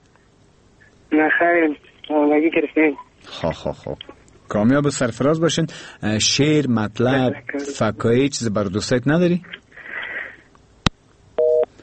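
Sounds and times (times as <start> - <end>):
speech: 1.2 - 9.6
telephone busy tone after a call is cut off: 11.4 - 11.7.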